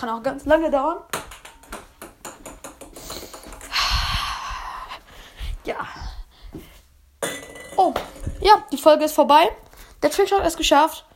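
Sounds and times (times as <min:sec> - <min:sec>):
speech: 0:00.0 - 0:01.2, 0:07.8 - 0:11.1
table tennis ball bouncing into Nutella glass jar: 0:01.1 - 0:03.8, 0:07.2 - 0:08.6.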